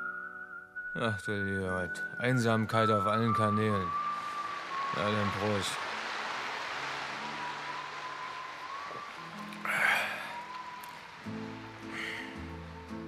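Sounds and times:
speech: 1.0 - 4.1, 4.9 - 5.9
quiet sustained musical tones: 1.5 - 13.0
soft rain falling on dark streets: 1.6 - 13.0
brief louder rush of noise: 3.3 - 13.0.

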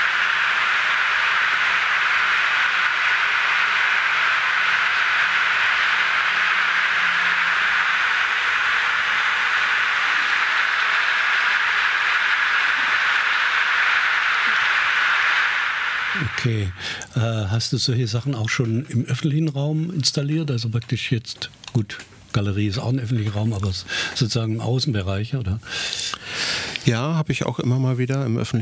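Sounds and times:
applause from a loudspeaker recorded from a distance: 0.0 - 17.0
speech: 16.4 - 26.2, 26.8 - 28.6.

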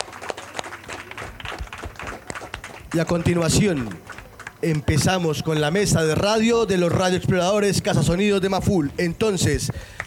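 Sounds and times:
audience applause: 0.0 - 5.8
speech: 2.9 - 10.0.

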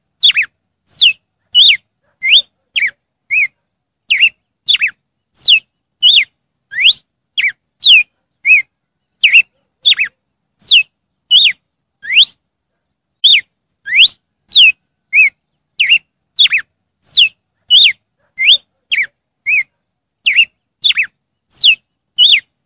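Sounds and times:
red-cowled cardinal song: 0.2 - 12.4, 13.2 - 22.5.

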